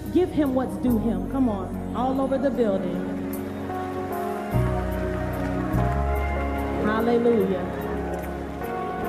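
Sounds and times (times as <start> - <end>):
speech: 0.1 - 3.1, 6.9 - 7.8
audience clapping hands: 2.8 - 9.0.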